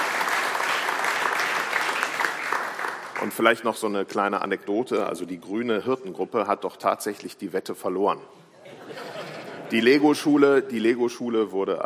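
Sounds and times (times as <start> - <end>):
audience applause: 0.0 - 3.4
speech: 3.2 - 8.4, 9.7 - 11.8
laughter: 8.5 - 9.9.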